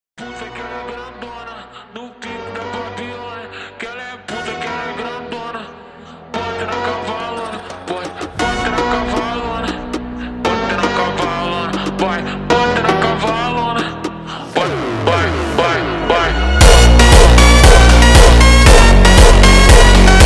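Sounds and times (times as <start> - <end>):
slowed funk jumpstyle music: 7.5 - 20.2.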